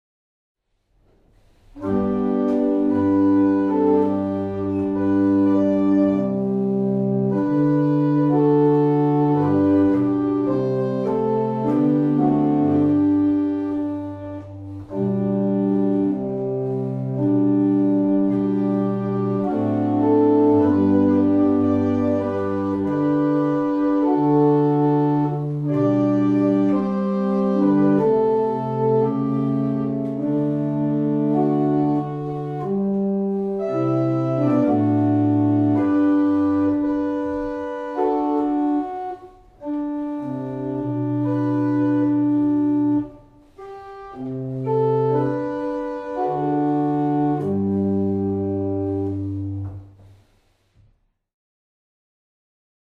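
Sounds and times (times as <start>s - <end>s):
barrel organs playing in Abingdon: 1.7s - 50.1s.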